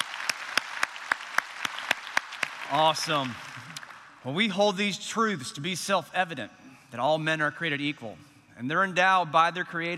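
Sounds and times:
audience applause welcoming everyone at a gathering: 0.0 - 4.0
rhythmic claps: 0.0 - 4.2
speech: 2.7 - 3.4, 4.2 - 9.9.

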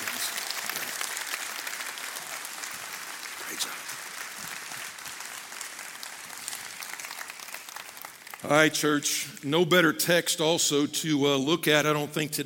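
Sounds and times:
applause: 0.0 - 9.4
speech: 3.6 - 4.0, 8.4 - 12.4.

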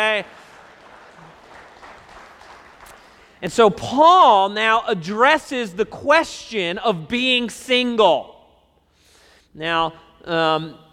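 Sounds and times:
speech: 0.0 - 0.4, 3.4 - 8.3, 9.6 - 10.8
one person clapping: 0.0 - 3.4
hiss: 0.0 - 3.7, 8.2 - 10.9.

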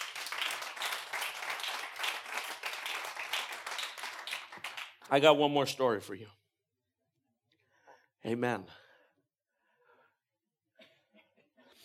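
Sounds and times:
audience applause: 0.0 - 5.1
speech: 5.1 - 6.4, 8.2 - 8.8.

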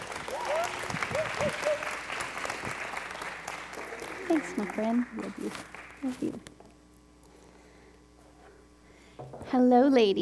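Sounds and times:
audience applause at a worship gathering welcoming a woman speaker: 0.0 - 6.3
speech: 4.6 - 6.5, 9.2 - 10.2.

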